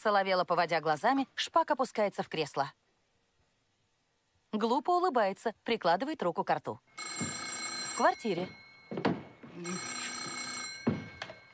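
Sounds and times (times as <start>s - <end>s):
speech: 0.0s - 2.8s, 4.5s - 7.4s, 8.0s - 9.9s
telephone ringing: 6.9s - 11.5s.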